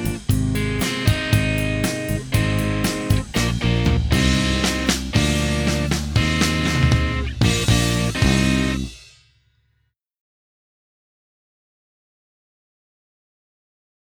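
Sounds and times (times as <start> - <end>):
keyboard: 0.0 - 8.9.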